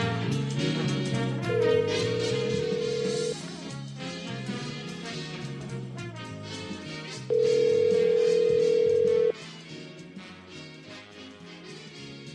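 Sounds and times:
busy music: 0.0 - 12.3
ringback tone on an outgoing phone call: 1.4 - 3.4, 7.3 - 9.3.

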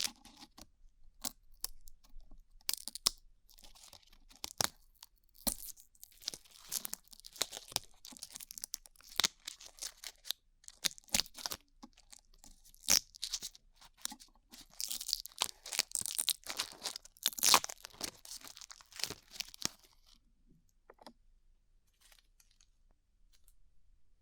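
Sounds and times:
glue being peeled off ears: 1.2 - 20.1.

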